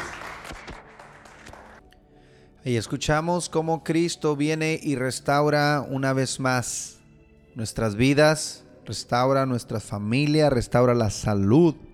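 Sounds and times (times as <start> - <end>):
audience applause: 0.0 - 1.8
speech: 2.6 - 7.0, 7.6 - 11.9.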